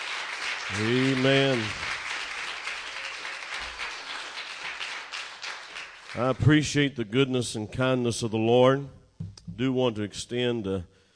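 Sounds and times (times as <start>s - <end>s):
audience clapping hands in praise: 0.0s - 6.9s
speech: 0.7s - 1.9s, 6.2s - 9.0s, 9.6s - 10.9s.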